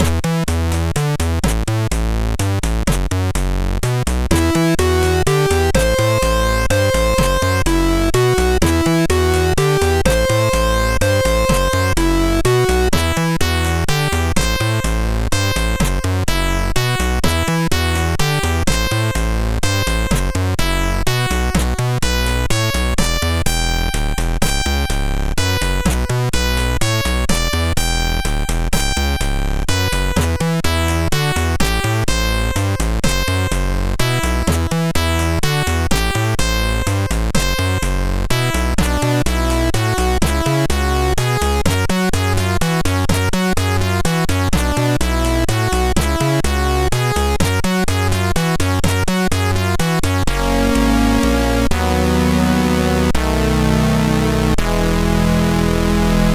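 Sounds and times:
MOS6581R3 SID chip music: 0.0s - 56.3s.

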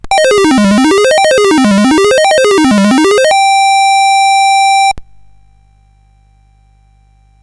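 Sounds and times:
SID chiptune music on CSG8580R5 chip: 0.0s - 3.9s.

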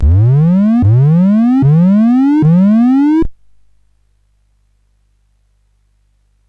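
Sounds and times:
SID CSG8580R5 chip game music: 0.0s - 3.2s.

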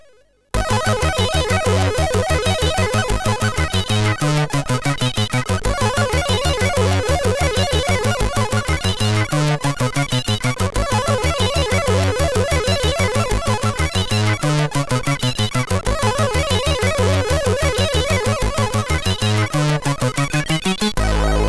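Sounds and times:
SID MOS6581R3 chiptune intro tune: 0.6s - 21.4s.

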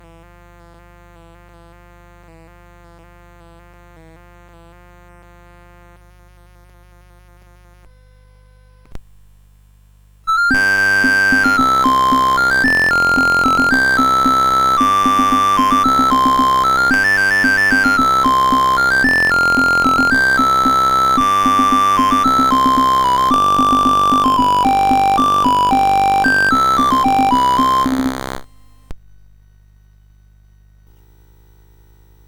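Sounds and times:
courante on CSG8580R5 sound chip: 10.3s - 28.8s.

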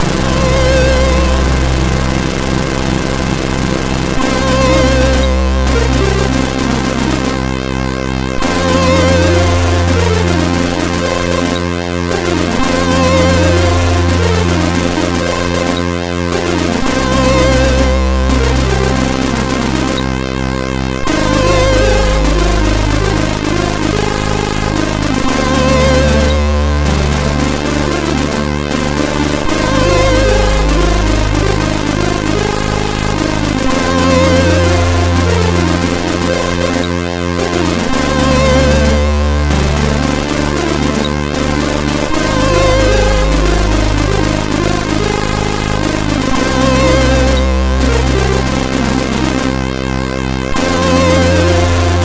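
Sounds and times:
loader music on MOS6581R4 sound chip: 0.0s - 52.0s.

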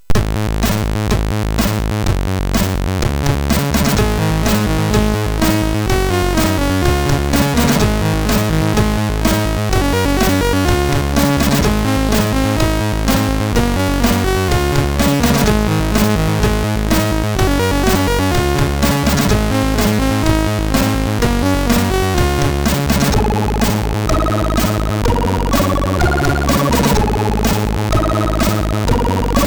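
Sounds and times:
MOS6581R3 chip game music: 0.1s - 29.4s.

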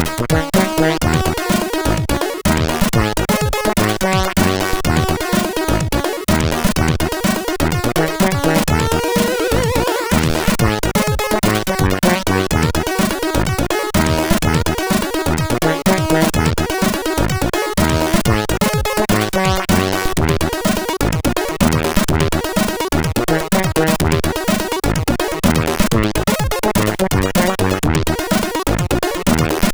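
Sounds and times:
dead funk chip synthesizer music: 0.0s - 29.7s.

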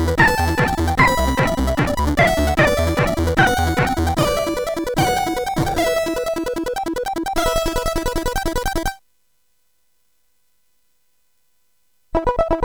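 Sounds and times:
chiptune music on CSG8580R5 sound chip: 0.0s - 9.0s.

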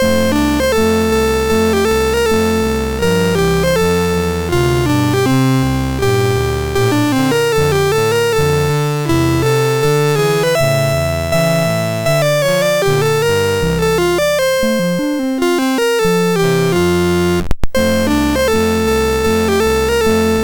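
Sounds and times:
MOS6581R3 SID chip sound: 0.0s - 20.4s.

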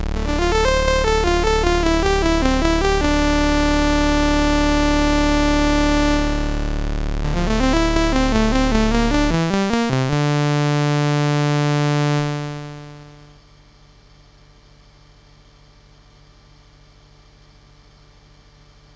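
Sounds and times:
game music on MOS6581R4 SID chip: 0.1s - 13.3s.

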